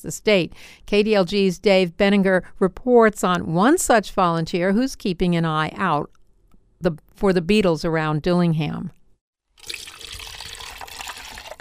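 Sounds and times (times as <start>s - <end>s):
speech: 0.0s - 6.2s, 6.8s - 9.0s
non-toxic antifreeze pouring into an insect collection jar: 9.6s - 11.5s.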